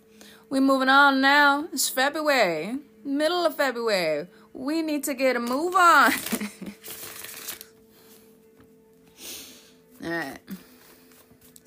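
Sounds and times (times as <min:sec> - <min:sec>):
speech: 0:00.5 - 0:06.6, 0:10.0 - 0:10.6
tarot cards being shuffled and drawn: 0:05.4 - 0:08.2, 0:10.8 - 0:11.6.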